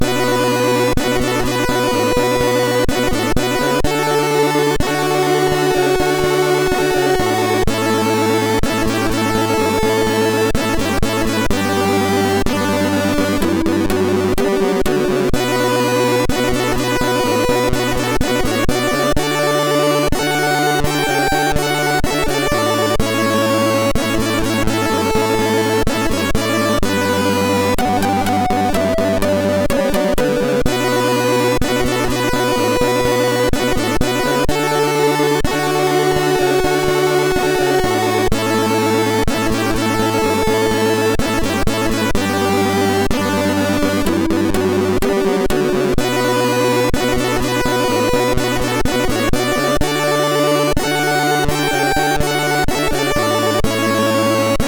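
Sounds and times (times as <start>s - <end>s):
MOS6581R2 SID chip music: 0.0s - 54.6s.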